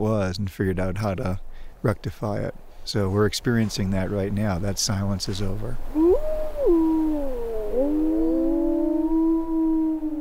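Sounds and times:
speech: 0:00.0 - 0:06.0
wolves howling in the snows of Yellowstone: 0:05.9 - 0:10.1.

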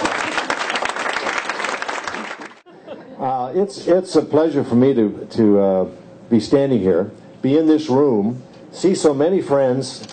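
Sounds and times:
audience applause: 0:00.0 - 0:02.6
laughter: 0:02.6 - 0:03.4
speech: 0:03.2 - 0:10.1.

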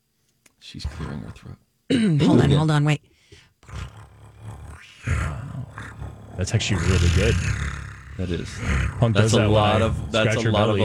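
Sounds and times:
speech: 0:00.7 - 0:03.1, 0:06.4 - 0:10.8
person imitating a big cat growl-roar: 0:03.6 - 0:10.8.

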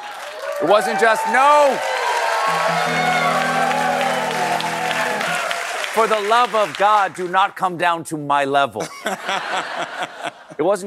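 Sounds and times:
audience applause: 0:00.0 - 0:07.4
speech: 0:00.6 - 0:03.4, 0:06.0 - 0:10.8
laughter: 0:08.8 - 0:10.6.

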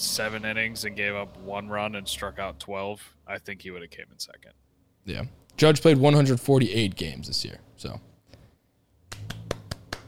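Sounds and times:
speech: 0:00.0 - 0:08.1
clapping: 0:09.1 - 0:10.0.

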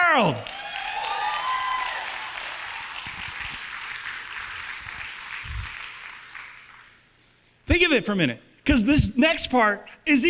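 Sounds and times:
speech: 0:00.1 - 0:00.6, 0:07.9 - 0:10.2
audience golf clap: 0:00.2 - 0:07.1.

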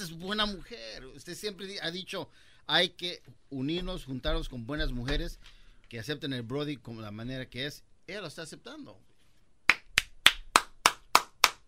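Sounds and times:
speech: 0:00.0 - 0:09.1
hand claps: 0:09.7 - 0:11.6.

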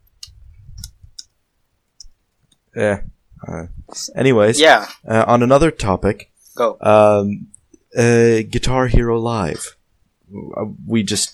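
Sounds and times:
faint clicks of someone writing in notes: 0:00.0 - 0:02.7
speech: 0:02.8 - 0:11.3.

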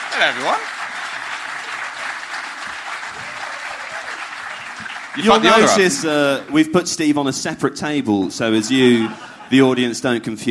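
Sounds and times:
audience applause greeting a show's producer: 0:00.0 - 0:06.6
speech: 0:00.2 - 0:00.8, 0:05.2 - 0:10.4
laughter: 0:05.2 - 0:06.2, 0:08.6 - 0:09.9.

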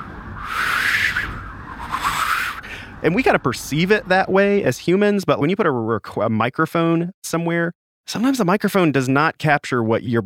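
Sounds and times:
voice imitating whistling wind: 0:00.0 - 0:02.7
speech: 0:03.0 - 0:10.2.

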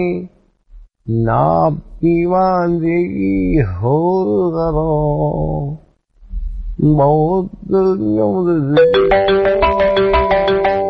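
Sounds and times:
speech: 0:00.0 - 0:00.4, 0:01.0 - 0:05.8, 0:06.8 - 0:09.7
telephone melodic ringtone: 0:08.8 - 0:10.8.

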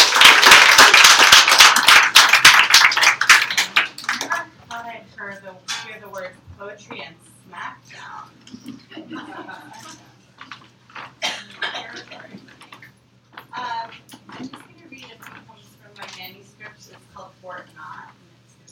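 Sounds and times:
audience applause: 0:00.0 - 0:04.4
laughter: 0:08.7 - 0:10.1.

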